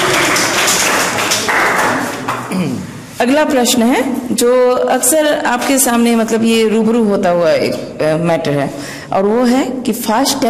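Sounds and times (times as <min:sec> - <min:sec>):
crowd clapping for a team: 0:00.0 - 0:02.6
speech: 0:03.2 - 0:10.4.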